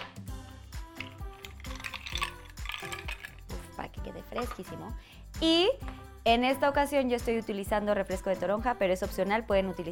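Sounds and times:
ice cubes placed into a drink: 0.9 - 3.8
speech: 4.2 - 9.8.

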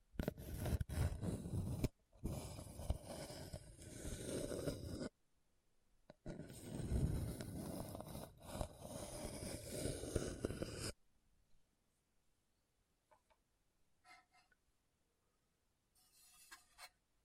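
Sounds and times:
hard bumpy scratching across a surface: 0.2 - 5.1, 6.3 - 11.0, 16.0 - 17.0.

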